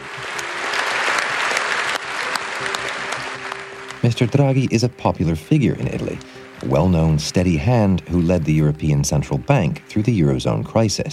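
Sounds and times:
parliamentary applause: 0.0 - 4.6
speech: 4.0 - 11.1.

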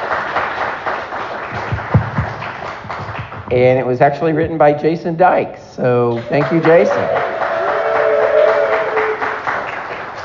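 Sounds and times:
small audience clapping: 0.0 - 3.7, 6.1 - 10.2
speech: 3.5 - 7.3.

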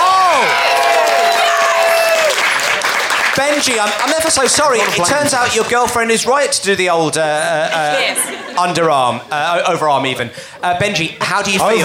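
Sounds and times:
audience applause: 0.0 - 6.1
speech: 3.4 - 11.8
laughter: 7.3 - 10.8.

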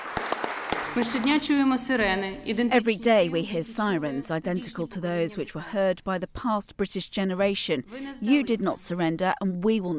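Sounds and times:
standing ovation applause: 0.0 - 1.5
speech: 1.0 - 9.9.

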